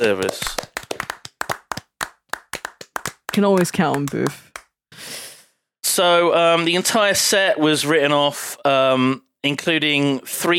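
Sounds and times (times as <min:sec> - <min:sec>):
speech: 0:00.0 - 0:00.6, 0:03.4 - 0:04.5, 0:06.0 - 0:10.5
people clapping: 0:00.0 - 0:04.7.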